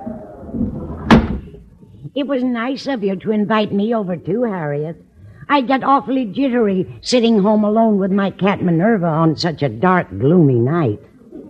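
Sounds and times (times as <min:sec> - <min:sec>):
window shutting thud: 0:00.6 - 0:01.5
speech: 0:02.1 - 0:11.1.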